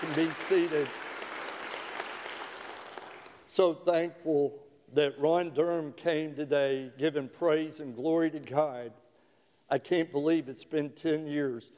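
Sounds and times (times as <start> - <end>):
audience applause: 0.0 - 3.4
speech: 0.2 - 1.1, 3.5 - 9.0, 9.7 - 11.7.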